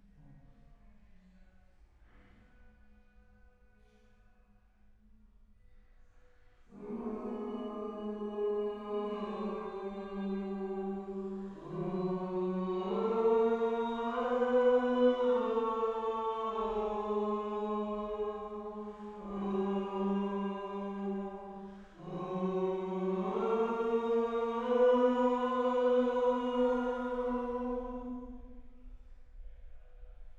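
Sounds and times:
choir singing: 6.7 - 28.6.

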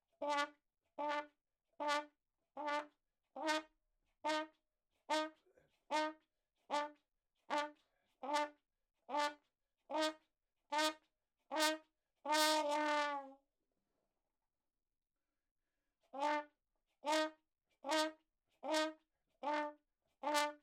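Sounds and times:
ragtime trumpet: 0.2 - 13.4, 16.2 - 16.5, 17.1 - 20.6.

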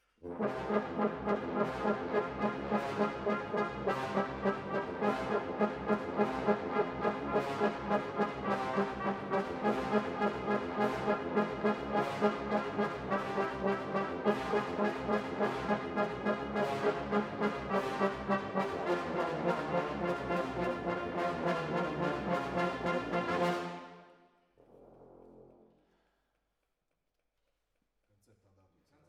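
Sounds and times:
horns playing: 0.2 - 24.1.

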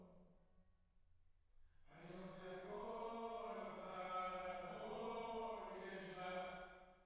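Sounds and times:
choir singing: 2.1 - 6.7.

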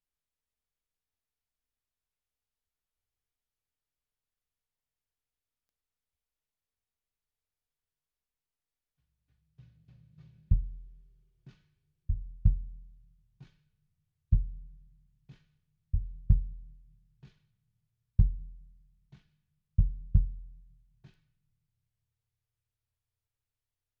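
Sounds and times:
bass drum: 10.5 - 11.2, 12.1 - 13.1, 14.4 - 15.0, 16.0 - 16.9, 18.2 - 18.8, 19.8 - 20.7.

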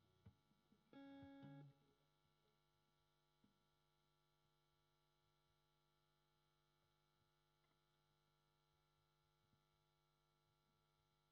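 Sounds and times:
guitar: 0.0 - 1.9.

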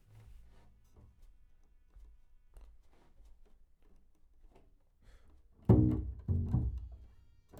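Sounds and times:
bass: 5.7 - 7.0.

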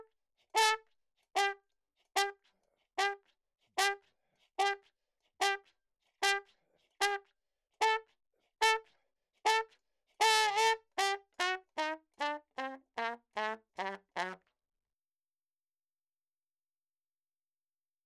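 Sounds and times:
ragtime trumpet: 0.6 - 0.8, 1.4 - 1.6, 2.2 - 2.4, 3.8 - 4.0, 4.6 - 4.8, 5.4 - 5.6, 6.2 - 7.2, 7.8 - 8.0, 8.6 - 8.8, 9.4 - 14.4.

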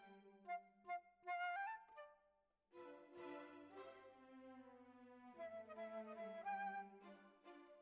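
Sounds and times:
flute: 0.5 - 2.3, 5.3 - 7.7.

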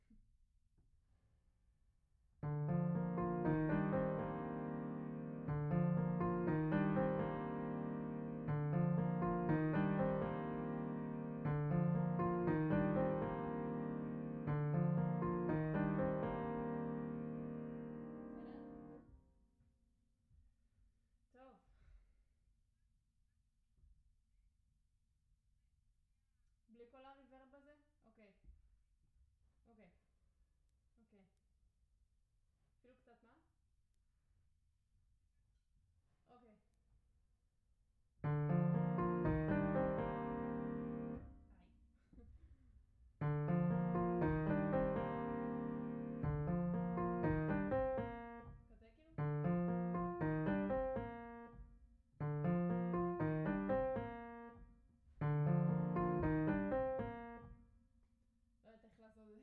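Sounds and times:
piano: 2.4 - 19.1, 38.2 - 41.6, 43.1 - 57.7.

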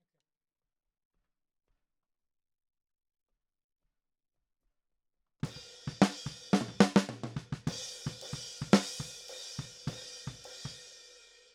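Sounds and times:
snare drum: 5.4 - 10.8.

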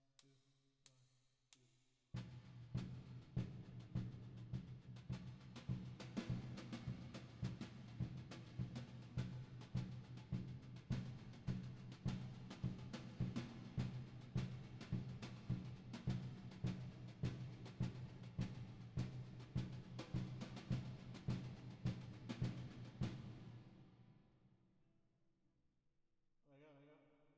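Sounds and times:
drums with reverb: 2.2 - 23.7.

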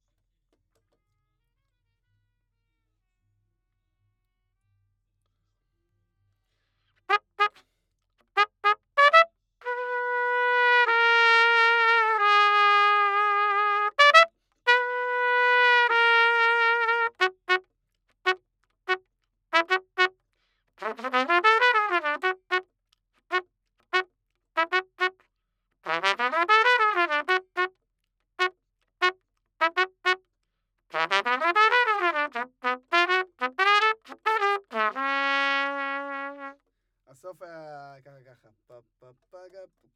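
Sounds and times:
trumpet: 7.1 - 7.7, 8.4 - 20.2, 20.8 - 22.7, 23.3 - 25.2, 25.8 - 27.8, 28.4 - 30.3, 30.9 - 36.7.

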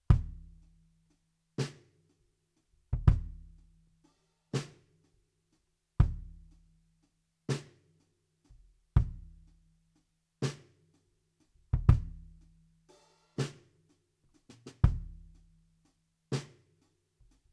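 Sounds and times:
bass drum: 0.1 - 0.6, 3.0 - 3.7, 6.0 - 6.5, 9.0 - 9.5, 11.7 - 12.4, 14.8 - 15.5.

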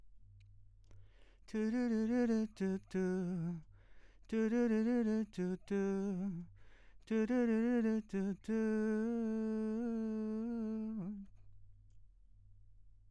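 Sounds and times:
vocals: 1.1 - 11.5.

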